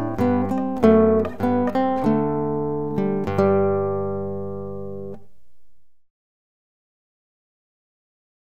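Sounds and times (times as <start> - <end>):
classical guitar playing free-stroke, arpeggio and contrapuntal: 0.0 - 6.0.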